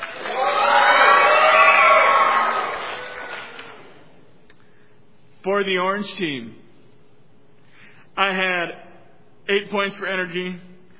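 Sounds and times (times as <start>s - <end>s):
team cheering and shouting together: 0.0s - 3.8s
speech: 5.4s - 6.6s, 8.2s - 8.8s, 9.5s - 10.7s.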